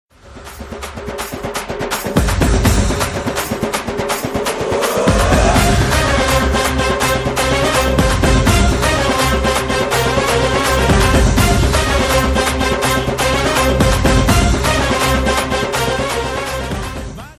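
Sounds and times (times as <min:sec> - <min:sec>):
background music drum beats: 0:00.2 - 0:17.3.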